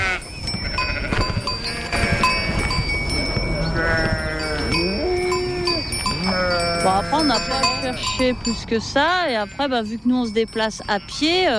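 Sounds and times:
flock of sheep bleating: 0:00.0 - 0:02.6, 0:03.5 - 0:08.1
speech: 0:07.2 - 0:11.5.

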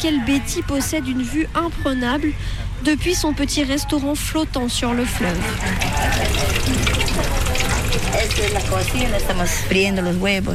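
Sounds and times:
faint voices murmuring: 0:00.0 - 0:10.5
speech: 0:00.0 - 0:10.5
eggs frying in a pan: 0:05.2 - 0:09.7.

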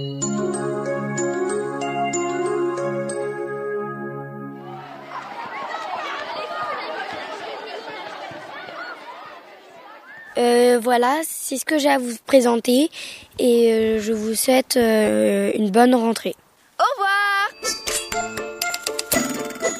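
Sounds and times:
school recess bell ringing: 0:00.0 - 0:05.9, 0:17.5 - 0:19.7
laughter: 0:04.6 - 0:10.3
speech: 0:10.8 - 0:16.4.

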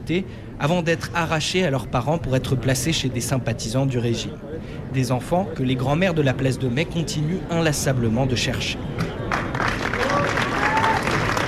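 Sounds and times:
speech: 0:00.1 - 0:09.8
large crowd applause in a hall: 0:09.0 - 0:11.4.

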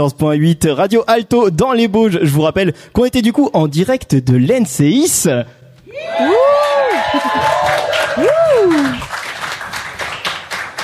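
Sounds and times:
speech: 0:00.0 - 0:09.1
live radio show audience cheering: 0:05.9 - 0:10.8.

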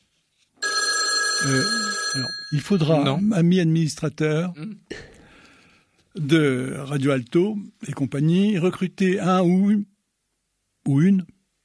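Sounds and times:
telephone bell ringing: 0:00.6 - 0:03.2
speech: 0:01.4 - 0:05.1, 0:06.1 - 0:09.9, 0:10.9 - 0:11.4.

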